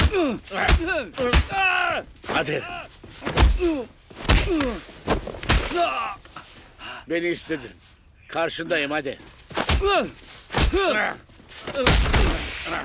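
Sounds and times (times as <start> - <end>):
punches landing in a fight: 0.0 - 2.4, 3.2 - 6.2, 9.5 - 11.1, 11.7 - 12.8
speech: 0.2 - 5.1, 5.7 - 6.2, 7.1 - 12.8.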